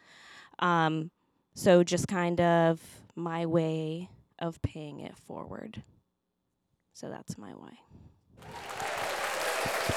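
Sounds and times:
speech: 0.6s - 5.9s, 7.0s - 8.7s
applause: 8.4s - 9.9s.

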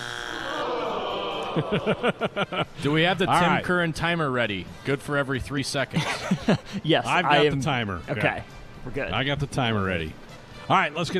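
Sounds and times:
game show incorrect answer buzzer: 0.0s - 0.9s
laughter: 0.8s - 3.3s, 6.0s - 6.8s
speech: 1.6s - 11.1s.

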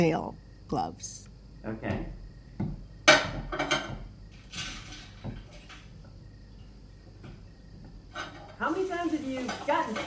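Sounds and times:
speech: 0.0s - 2.8s, 8.6s - 10.0s
dishes clattering into a sink: 3.0s - 6.0s, 8.1s - 10.0s.

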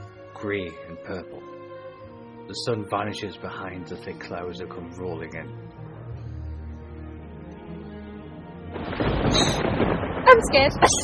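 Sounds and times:
speech: 0.4s - 1.6s, 2.5s - 5.8s, 10.4s - 11.0s
thunder crack in the sky: 8.7s - 11.0s.

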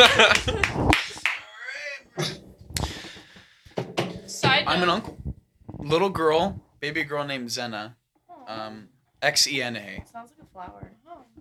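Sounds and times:
speech: 0.0s - 0.9s, 4.7s - 5.2s, 5.8s - 11.4s
hand claps: 0.0s - 1.5s
laughter-like vocal sounds: 0.0s - 2.5s.

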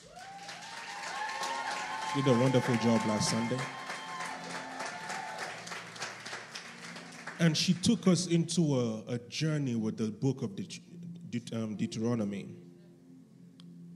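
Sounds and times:
audience applause: 0.0s - 8.0s
speech: 2.1s - 3.8s, 7.4s - 12.6s.

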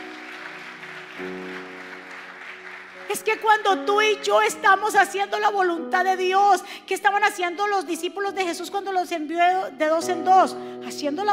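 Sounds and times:
audience applause: 0.0s - 3.7s
speech: 1.2s - 1.5s, 3.1s - 11.3s.

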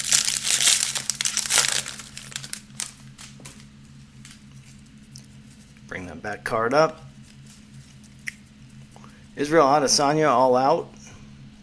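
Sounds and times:
foil wrapper of a 2023 UFC Prizm trading card pack being torn open: 0.0s - 5.7s
speech: 6.2s - 7.1s, 9.4s - 11.0s.

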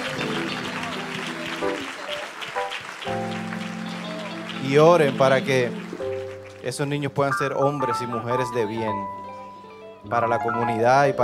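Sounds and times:
audience applause: 0.0s - 8.4s
speech: 4.7s - 5.8s, 6.6s - 9.2s, 10.0s - 11.2s.

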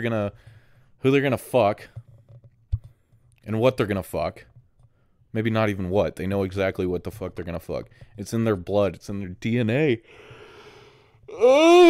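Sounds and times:
speech: 0.0s - 2.0s, 3.4s - 4.5s, 5.3s - 10.4s, 11.3s - 11.8s
person yawning: 11.3s - 11.8s.

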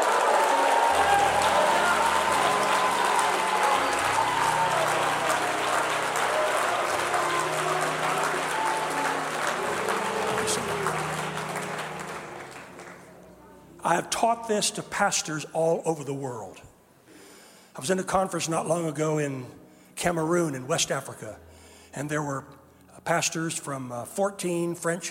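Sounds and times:
audience applauding: 0.0s - 13.2s
speech: 13.9s - 16.7s, 17.8s - 25.0s.

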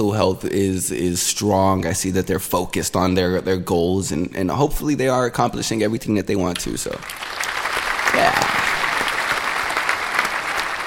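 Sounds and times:
speech: 0.0s - 7.5s
applause: 7.0s - 10.8s.

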